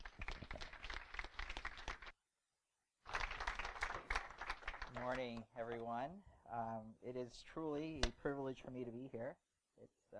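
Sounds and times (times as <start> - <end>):
audience applause: 0.0 - 2.1, 3.1 - 5.4
speech: 5.0 - 10.1.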